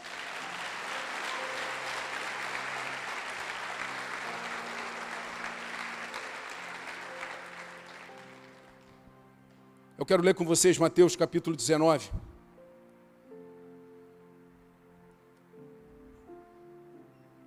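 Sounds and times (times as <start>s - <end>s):
crowd clapping and cheering: 0.0s - 9.1s
speech: 10.0s - 12.3s.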